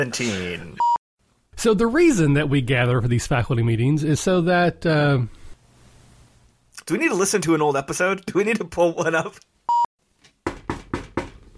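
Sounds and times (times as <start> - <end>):
speech: 0.0 - 0.9, 1.6 - 5.4, 6.8 - 9.5
knuckles knocking on a wooden desk: 10.4 - 11.5.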